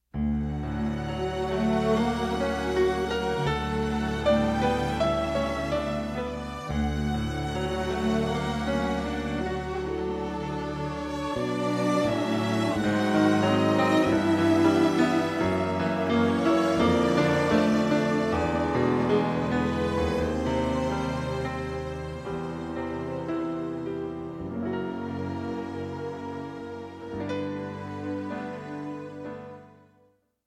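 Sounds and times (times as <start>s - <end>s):
theme from a piano concerto: 0.1s - 30.2s.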